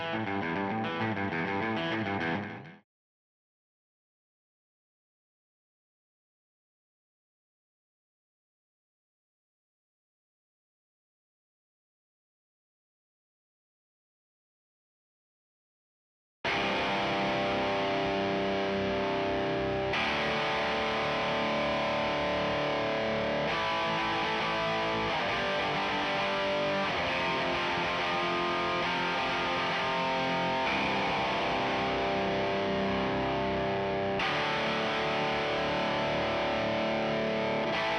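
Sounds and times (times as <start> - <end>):
bass guitar: 0.0 - 2.8, 16.5 - 37.9.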